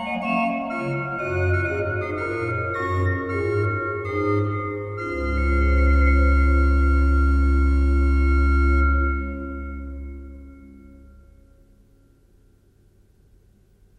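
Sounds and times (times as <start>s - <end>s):
Holfluit and Woudfluit organ stops: 0.0s - 11.2s.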